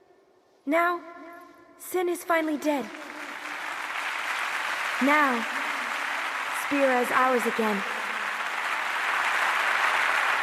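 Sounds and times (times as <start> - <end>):
speech: 0.7 - 1.2, 1.8 - 3.0, 5.0 - 5.6, 6.7 - 8.0
thunderous applause: 3.0 - 10.4.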